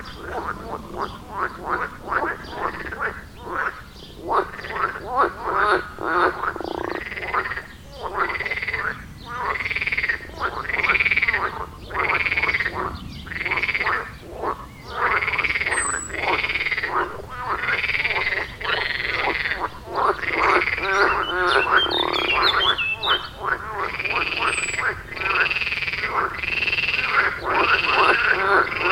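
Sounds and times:
frog chorus croaking: 0.0 - 28.9
faint high bird chirps: 20.4 - 23.4.

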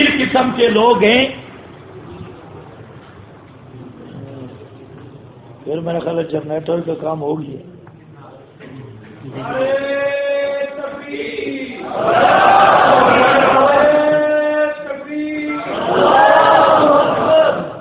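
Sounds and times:
speech: 0.3 - 1.4, 5.7 - 7.8, 9.2 - 10.3, 11.0 - 13.8
crowd chanting a slogan in the dark after a power cut: 11.0 - 14.2, 15.5 - 17.8.

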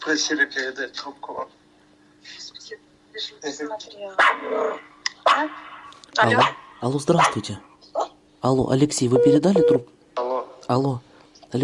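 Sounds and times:
speech: 0.0 - 1.6, 2.2 - 11.6
small dog barking at home: 4.2 - 5.6, 6.3 - 6.6, 7.2 - 7.4.

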